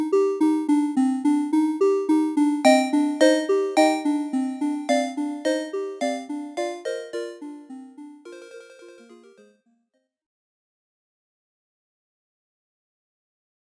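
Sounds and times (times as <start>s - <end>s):
title background music: 0.0s - 9.5s.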